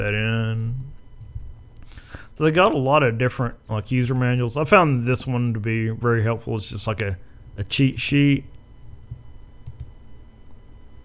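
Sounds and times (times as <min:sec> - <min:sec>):
speech: 0:00.0 - 0:00.7, 0:02.4 - 0:08.5
computer mouse clicks: 0:09.6 - 0:09.9.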